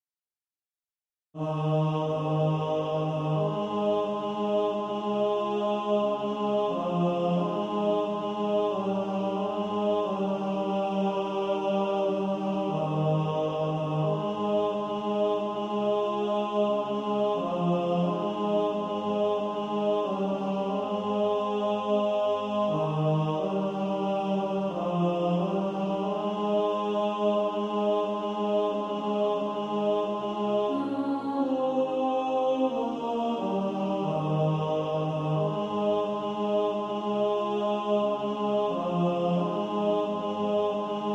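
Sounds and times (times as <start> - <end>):
tenor singing: 1.4 - 41.1.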